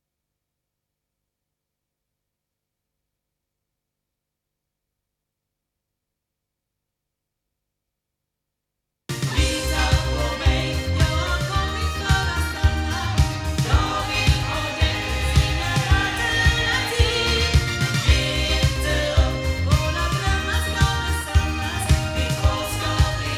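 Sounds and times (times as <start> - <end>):
loudspeakers: 9.2 - 23.3.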